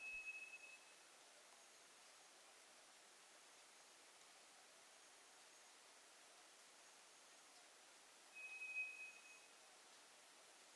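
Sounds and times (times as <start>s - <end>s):
White's thrush whistle: 8.4s - 9.5s.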